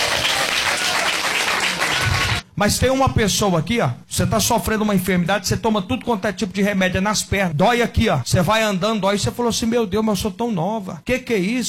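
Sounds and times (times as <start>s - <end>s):
church congregation applauding during a healing service: 0.0s - 2.4s
speech: 2.6s - 11.6s.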